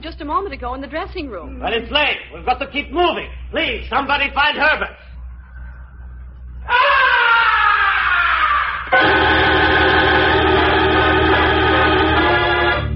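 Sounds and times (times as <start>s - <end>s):
speech: 0.1s - 5.0s
blood-curdling scream from high above stage: 6.6s - 12.8s.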